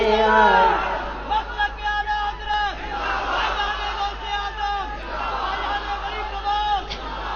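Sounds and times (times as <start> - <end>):
crowd chanting a religious slogan for Ala Hazrat: 0.0 - 7.3.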